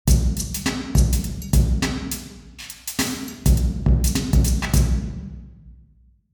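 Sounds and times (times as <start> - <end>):
drum in church: 0.1 - 5.8.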